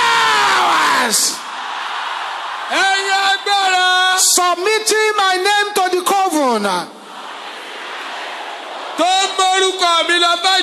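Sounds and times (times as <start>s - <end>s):
one strong voice with a long downward-sliding yell: 0.0s - 1.4s
crowd shouting loudly: 0.0s - 4.9s, 6.9s - 10.6s
speech: 3.5s - 7.0s, 9.0s - 10.6s.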